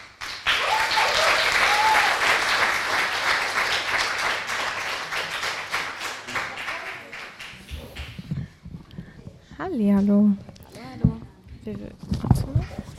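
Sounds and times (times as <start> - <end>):
crowd applauding: 0.0 - 8.5
speech: 9.7 - 10.5, 11.7 - 12.5.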